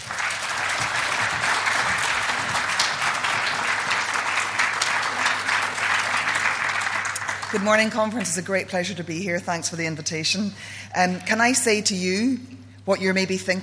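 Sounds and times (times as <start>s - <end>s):
conference audience applause welcoming a speaker: 0.0s - 8.4s
speech: 7.5s - 13.6s.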